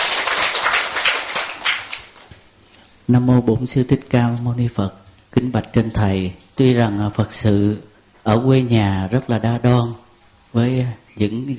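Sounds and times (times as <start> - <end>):
crowd applauding: 0.0 - 2.3
speech: 3.1 - 11.5.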